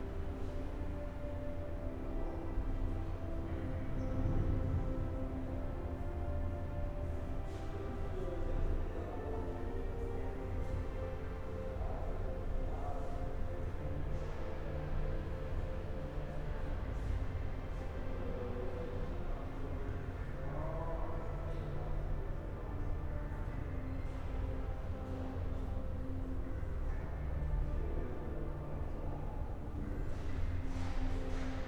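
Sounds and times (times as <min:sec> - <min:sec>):
music in a flea market hangar in Marseille: 0:00.0 - 0:31.6.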